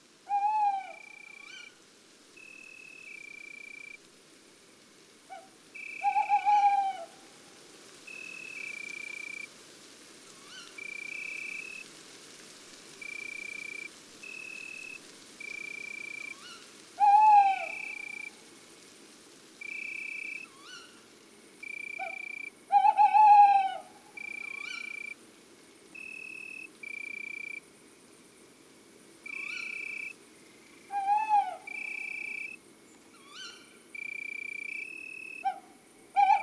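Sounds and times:
tawny owl quavering hoots: 0.3 - 1.8, 5.3 - 7.3, 15.6 - 18.4, 21.7 - 25.2, 29.3 - 30.1, 30.8 - 32.6, 33.2 - 36.4.

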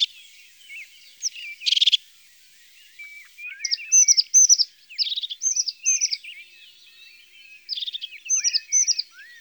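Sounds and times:
crested tit calling: 0.0 - 2.0, 3.0 - 6.4, 7.6 - 9.4.

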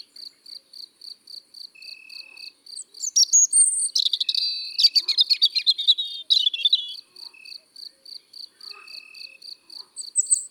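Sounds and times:
European robin song: 2.8 - 10.4.

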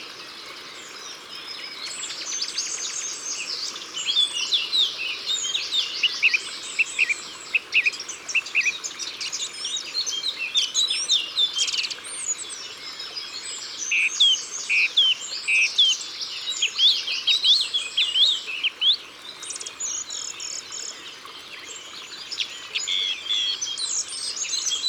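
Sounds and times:
Eurasian blackcap song: 1.4 - 24.8.

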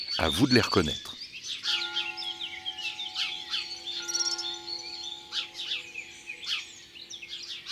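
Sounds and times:
speech: 0.2 - 1.1
sparrows chirping: 1.7 - 7.6.

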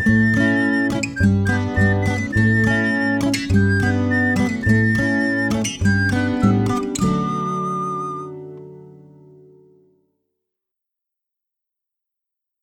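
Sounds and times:
instrumental music: 0.0 - 10.0.

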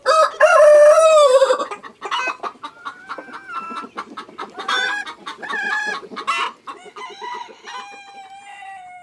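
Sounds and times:
rooster giving a loud wavering crow: 0.0 - 1.7, 6.8 - 9.0
hens clucking: 0.0 - 9.0.

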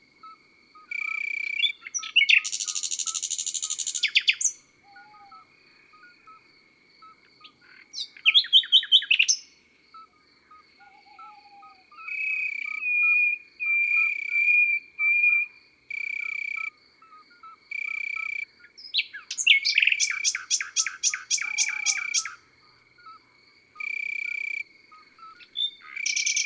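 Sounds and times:
common nightingale singing in the countryside: 0.8 - 6.4, 7.0 - 26.4.

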